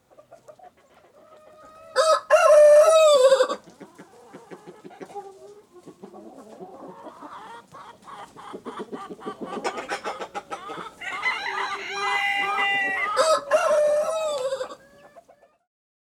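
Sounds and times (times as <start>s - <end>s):
chicken clucking: 0.0s - 15.7s
rooster crowing: 1.9s - 3.6s, 11.0s - 14.8s.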